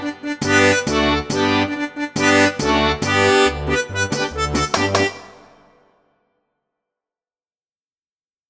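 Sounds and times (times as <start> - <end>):
instrumental music: 0.0 - 6.1.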